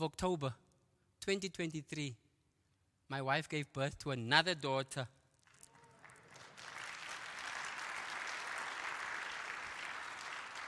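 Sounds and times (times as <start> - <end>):
speech: 0.0 - 0.6, 1.2 - 2.2, 3.1 - 5.2
audience clapping: 5.4 - 10.6.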